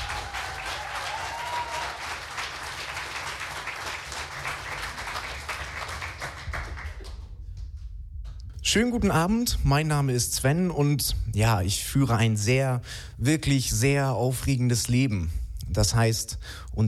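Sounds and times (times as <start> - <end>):
audience applause: 0.0 - 7.3
speech: 8.7 - 16.8.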